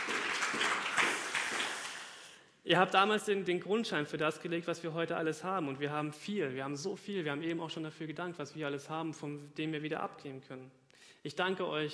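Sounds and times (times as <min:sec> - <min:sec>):
audience clapping: 0:00.0 - 0:02.4
speech: 0:02.7 - 0:11.9.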